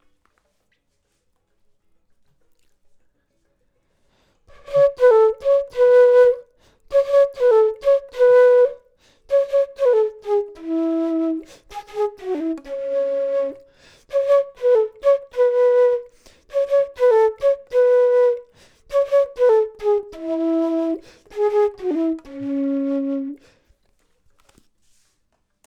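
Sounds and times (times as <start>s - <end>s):
flute: 4.5s - 23.7s.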